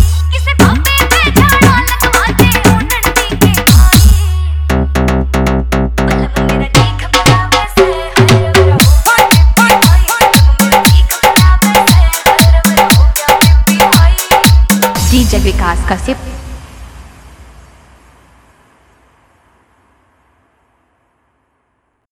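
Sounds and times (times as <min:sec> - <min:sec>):
hard dholki remix song: 0:00.0 - 0:16.8.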